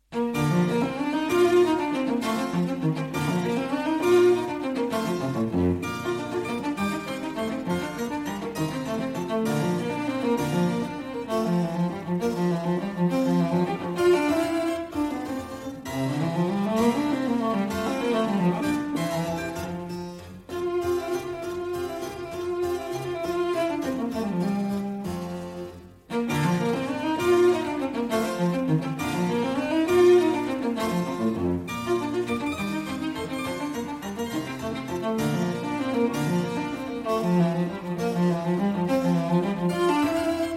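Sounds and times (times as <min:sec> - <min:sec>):
cello sonata in B-flat major: 0:00.0 - 0:40.5.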